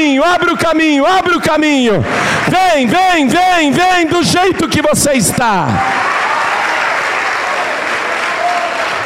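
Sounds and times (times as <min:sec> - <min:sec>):
speech: 0:00.2 - 0:06.2
church audience applauding: 0:05.3 - 0:09.0.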